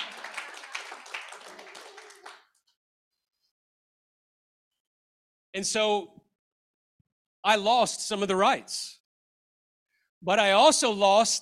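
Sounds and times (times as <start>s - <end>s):
crowd applause: 0.0s - 2.5s
speech: 5.6s - 6.2s, 7.4s - 9.0s, 10.2s - 11.4s.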